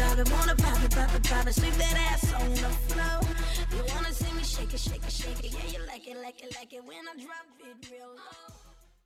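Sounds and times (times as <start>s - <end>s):
hip hop wordplay segue: 0.0s - 5.9s.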